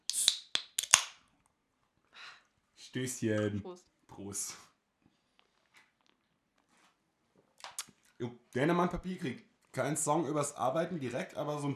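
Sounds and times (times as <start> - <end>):
bottle cap pried off a beer: 0.0 - 1.2
speech: 2.9 - 4.7, 8.2 - 11.7.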